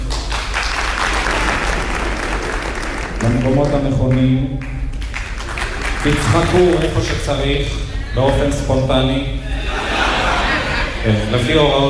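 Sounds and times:
audience applause: 0:00.0 - 0:08.6
speech: 0:03.2 - 0:04.8, 0:06.0 - 0:09.4, 0:11.0 - 0:11.8
laughter: 0:06.1 - 0:11.8.

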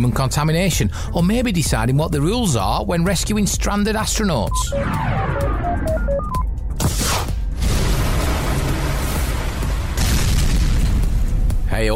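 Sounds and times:
speech: 0:00.0 - 0:06.0
test rocket crashing: 0:06.8 - 0:11.5.

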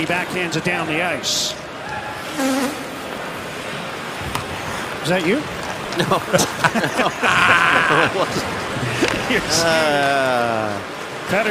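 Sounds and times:
speech: 0:00.0 - 0:01.6, 0:02.4 - 0:02.9, 0:05.0 - 0:11.4
horn blown in the crowd: 0:02.0 - 0:03.3
laughter: 0:05.3 - 0:10.9.

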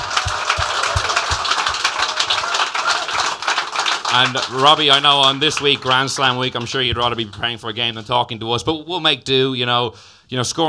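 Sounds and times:
audience applause: 0:00.0 - 0:07.0
speech: 0:04.2 - 0:10.6.

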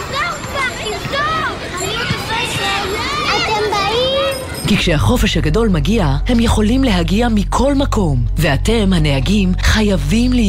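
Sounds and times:
children playing and shouting: 0:00.0 - 0:05.0
speech: 0:04.7 - 0:10.4.

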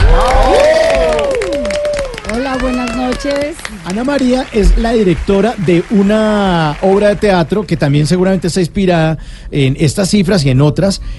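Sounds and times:
cheers and whoops: 0:00.0 - 0:03.6
audience applause welcoming a guest: 0:00.0 - 0:08.4
speech: 0:03.3 - 0:11.1.

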